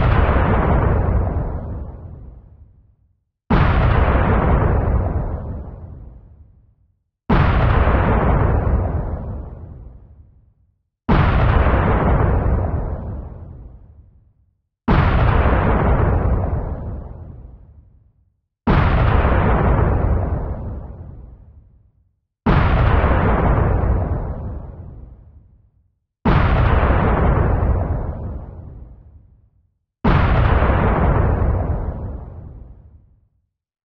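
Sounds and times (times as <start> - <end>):
bomb blast: 0.0 - 2.5, 3.5 - 6.2, 7.3 - 10.0, 11.1 - 13.9, 14.9 - 17.8, 18.7 - 21.5, 22.5 - 25.2, 26.3 - 29.2, 30.0 - 32.9.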